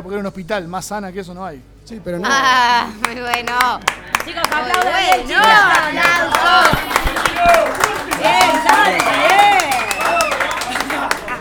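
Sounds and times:
speech: 0.0 - 9.8
audience clapping: 3.0 - 11.3
voices shouting and cheering: 4.3 - 11.3.

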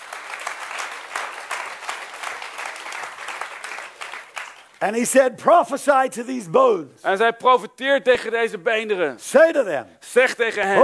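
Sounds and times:
audience applause: 0.0 - 4.8
speech: 4.8 - 10.8.

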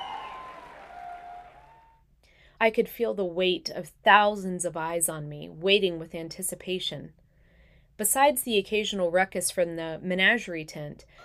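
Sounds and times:
crowd applause in a circus: 0.0 - 1.9
speech: 2.6 - 7.2, 8.0 - 11.2.

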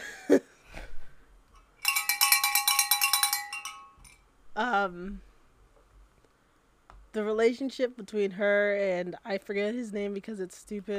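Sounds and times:
bell ringing: 1.8 - 4.2
speech: 4.8 - 5.3, 7.1 - 10.9.

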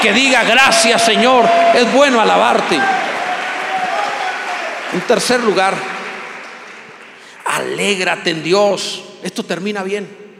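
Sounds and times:
speech: 0.0 - 3.0, 4.9 - 6.0, 7.6 - 10.2
audience shouting praises: 0.0 - 4.8
audience applauding: 0.0 - 8.0.

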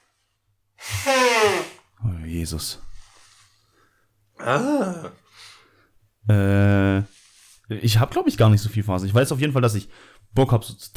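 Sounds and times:
nose blowing: 0.8 - 1.9
speech: 2.3 - 2.9, 4.4 - 5.5, 6.2 - 7.1, 7.7 - 10.9.

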